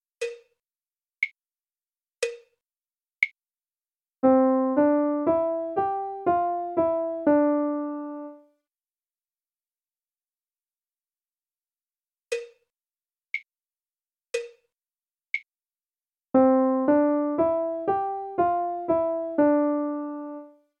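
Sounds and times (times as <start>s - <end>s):
melody: 4.2s - 8.4s, 16.4s - 20.5s.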